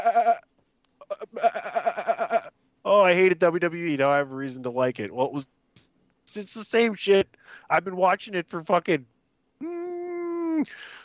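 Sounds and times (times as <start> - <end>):
man imitating sheep bleating: 0.0 - 0.4, 1.0 - 2.5, 9.6 - 10.7
speech: 2.9 - 5.6, 6.3 - 9.1, 10.6 - 11.0.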